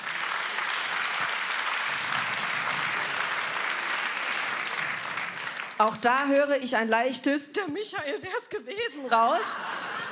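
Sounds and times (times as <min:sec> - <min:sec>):
audience applause: 0:00.0 - 0:06.2
speech: 0:05.8 - 0:10.1
laughter: 0:09.0 - 0:10.1.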